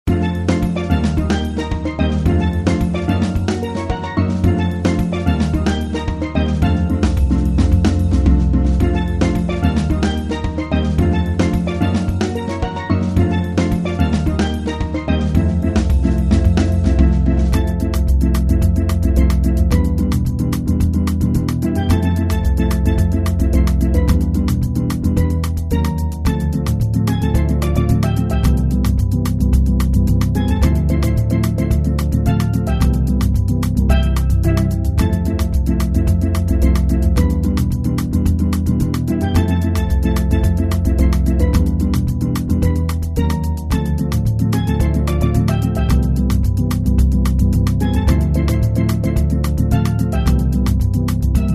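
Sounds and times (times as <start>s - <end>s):
samba music: 0.1s - 51.5s.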